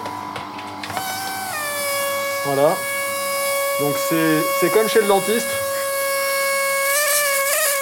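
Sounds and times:
compressed-air hammer scraping sediment: 0:01.6 - 0:07.8
speech: 0:02.4 - 0:02.9, 0:03.8 - 0:05.6.

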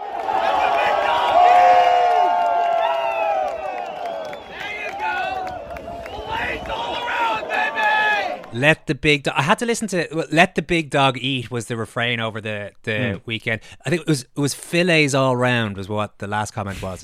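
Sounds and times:
crowd of golf fans cheering and shouting: 0:00.0 - 0:08.6
speech: 0:08.6 - 0:17.0.

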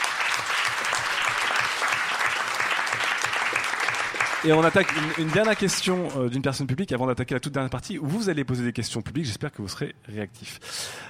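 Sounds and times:
audience applause: 0:00.0 - 0:06.2
speech: 0:04.4 - 0:11.0.

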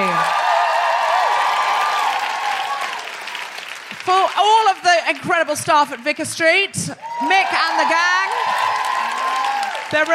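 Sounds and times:
crowd cheering: 0:00.0 - 0:04.8, 0:07.0 - 0:10.1
crowd applauding: 0:00.0 - 0:06.0, 0:07.0 - 0:10.1
speech: 0:04.3 - 0:08.8, 0:09.9 - 0:10.1.

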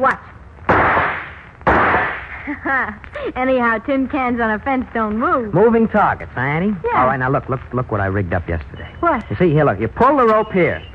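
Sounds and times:
speech: 0:00.0 - 0:00.3, 0:02.5 - 0:10.9
burst of noise: 0:00.4 - 0:02.7
rifle shot in a radio drama: 0:00.7 - 0:02.4.

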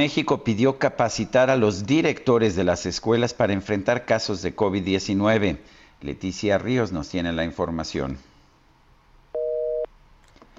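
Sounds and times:
speech: 0:00.0 - 0:08.3
telephone busy tone after dropped call: 0:09.4 - 0:09.9.

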